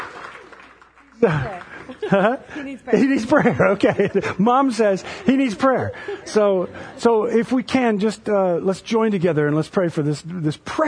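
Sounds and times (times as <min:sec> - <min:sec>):
applause: 0:00.0 - 0:02.3
laughter: 0:01.2 - 0:08.1
speech: 0:01.2 - 0:10.8.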